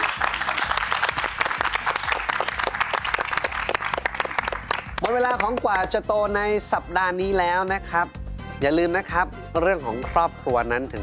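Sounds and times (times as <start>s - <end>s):
audience applause: 0.0s - 5.1s
speech: 5.4s - 11.0s.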